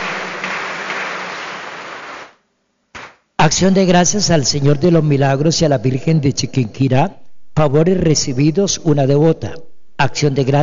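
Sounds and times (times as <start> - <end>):
applause: 0.0 - 2.4, 3.0 - 3.2
speech: 3.4 - 10.6.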